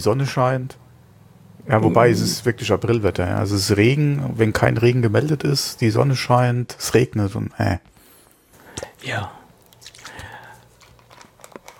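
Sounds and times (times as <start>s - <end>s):
speech: 0.0s - 0.8s, 1.6s - 7.9s, 9.0s - 9.4s
sip from a bottle: 9.8s - 10.8s.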